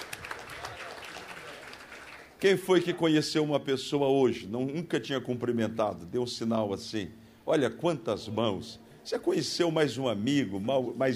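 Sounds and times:
audience applause: 0.0 - 2.4
speech: 2.4 - 11.1.

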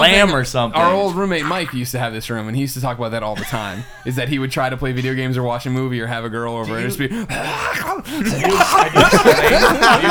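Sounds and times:
speech: 0.0 - 10.0
man hawking and clearing his throat: 3.4 - 4.1, 6.6 - 10.0
laughter: 3.4 - 5.6, 6.6 - 10.0.

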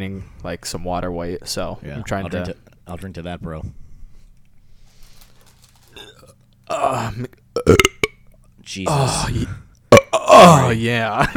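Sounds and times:
speech: 0.0 - 3.8, 6.7 - 7.8, 8.7 - 9.6, 10.3 - 11.3
long loud gurgling burp: 6.0 - 8.2, 8.9 - 10.7.

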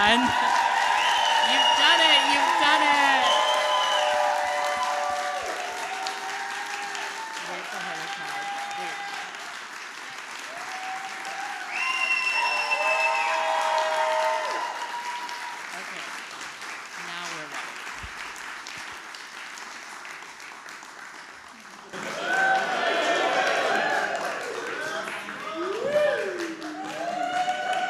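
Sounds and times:
speech: 0.0 - 0.7
high whoops and shouts: 0.0 - 9.3, 10.5 - 15.6, 25.4 - 27.8
crowd cheering: 0.0 - 16.3, 21.6 - 27.8
crowd applause: 0.0 - 27.8
laughter: 21.9 - 27.4.

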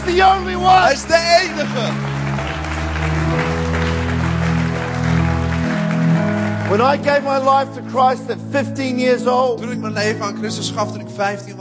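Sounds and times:
crowd clapping: 0.0 - 8.1
sustained keyboard or organ chords: 0.0 - 11.5
speech: 0.1 - 2.1, 6.7 - 11.5.

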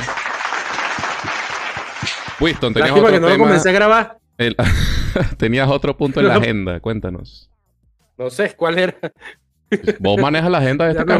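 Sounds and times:
small group applauding: 0.0 - 3.6
speech: 2.4 - 7.5, 8.2 - 11.1
laughter: 8.8 - 11.1.

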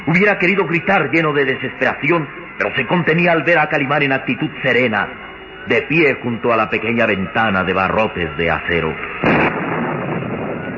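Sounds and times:
speech: 0.0 - 9.5
thunder of an approaching storm: 9.2 - 10.7.

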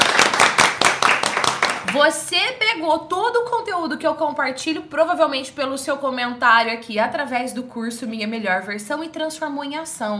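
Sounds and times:
hand clapping: 0.0 - 2.0
speech: 1.9 - 10.1.

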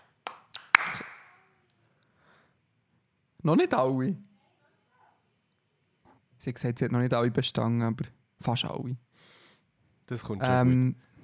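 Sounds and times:
sharp hand claps: 0.0 - 1.4
speech: 3.4 - 4.3, 6.4 - 9.3, 10.1 - 11.1.

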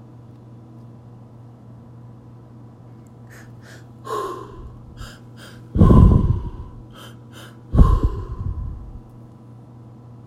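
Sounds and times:
heavy rhythmic breathing during a guided breathing exercise: 3.3 - 9.1.

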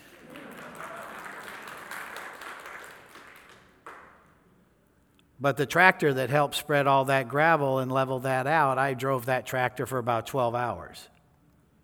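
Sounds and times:
audience applause: 0.0 - 4.1
speech: 5.4 - 11.1.

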